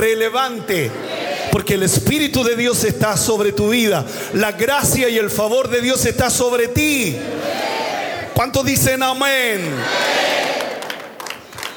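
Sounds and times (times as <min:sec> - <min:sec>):
speech: 0:00.0 - 0:07.6, 0:08.4 - 0:10.4
audience applauding: 0:09.9 - 0:11.7.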